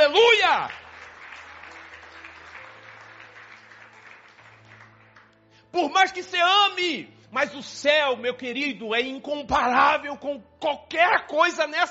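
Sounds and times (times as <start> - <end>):
crowd clapping: 0.0 - 5.4
speech: 0.6 - 0.8, 5.7 - 11.8.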